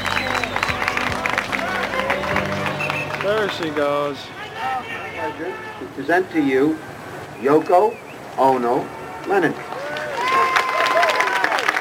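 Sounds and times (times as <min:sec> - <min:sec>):
crowd applauding: 0:00.0 - 0:05.2, 0:09.0 - 0:11.8
murmur of voices: 0:00.0 - 0:09.9
speech: 0:03.3 - 0:09.7.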